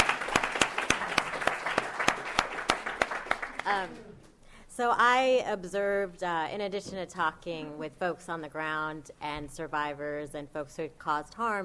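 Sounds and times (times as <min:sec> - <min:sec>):
audience applause: 0:00.0 - 0:04.0
speech: 0:03.7 - 0:04.2, 0:04.8 - 0:11.6.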